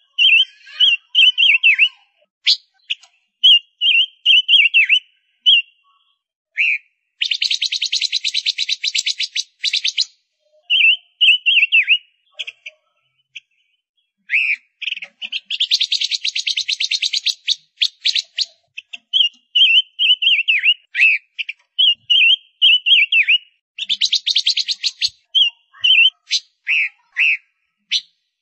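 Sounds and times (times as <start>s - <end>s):
Gouldian finch singing: 0.0s - 28.4s.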